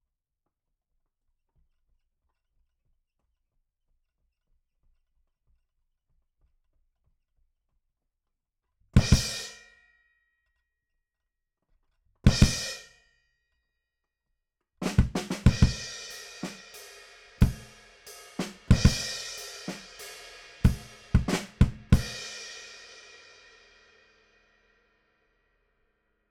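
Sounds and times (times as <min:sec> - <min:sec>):
bass drum: 0:14.8 - 0:16.6, 0:17.4 - 0:17.8, 0:18.4 - 0:22.4.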